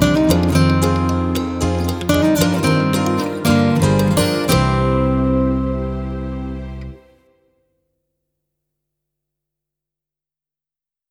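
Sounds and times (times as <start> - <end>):
backing track: 0.0 - 7.2.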